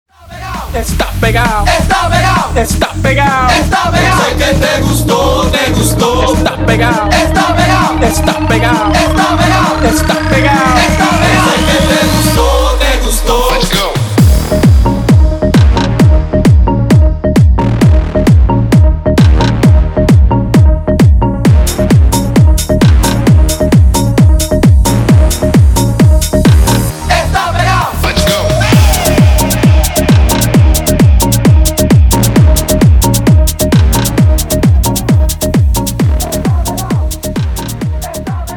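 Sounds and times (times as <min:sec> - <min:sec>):
tribal remix music: 0:00.1 - 0:38.5.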